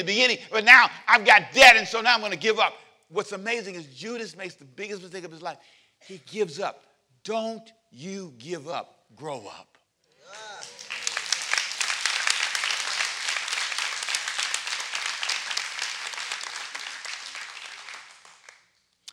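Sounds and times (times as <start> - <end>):
speech: 0.0 - 9.7
audience clapping: 10.3 - 18.7.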